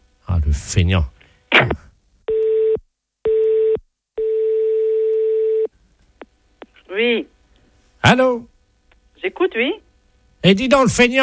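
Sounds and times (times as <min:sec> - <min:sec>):
speech: 0:00.3 - 0:01.8, 0:07.0 - 0:07.3, 0:08.0 - 0:08.5, 0:09.2 - 0:09.8, 0:10.4 - 0:11.2
telephone ringing unanswered: 0:02.4 - 0:05.7.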